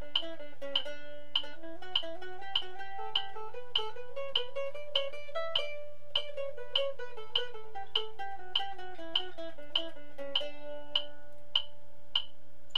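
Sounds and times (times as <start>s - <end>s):
mandolin playing D scale triplet progression: 0.0s - 12.5s.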